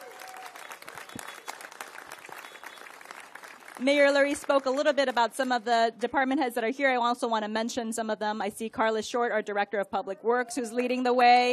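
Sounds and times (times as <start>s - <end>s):
audience applause: 0.0s - 5.0s
speech: 3.8s - 11.5s.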